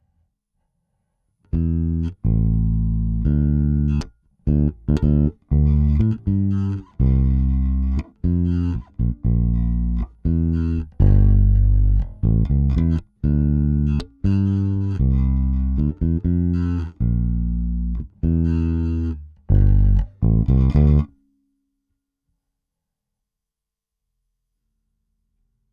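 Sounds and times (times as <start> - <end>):
bass: 1.5 - 21.2.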